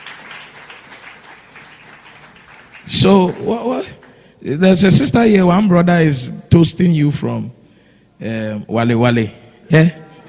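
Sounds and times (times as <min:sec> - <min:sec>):
crowd clapping: 0:00.0 - 0:04.3
speech: 0:02.9 - 0:07.6, 0:08.2 - 0:10.0.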